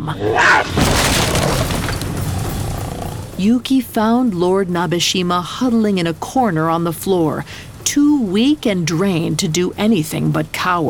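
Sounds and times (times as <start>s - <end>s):
speech: 0.0s - 1.4s, 3.4s - 10.8s
door torn off its hinges: 0.6s - 2.2s.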